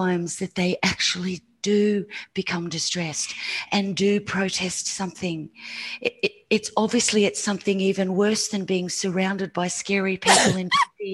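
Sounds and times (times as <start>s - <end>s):
speech: 0.0s - 11.1s
sneeze: 10.3s - 10.6s.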